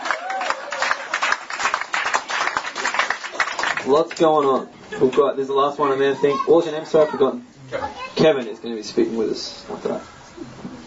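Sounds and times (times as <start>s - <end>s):
crowd applauding: 0.0s - 5.3s
speech: 3.8s - 10.6s.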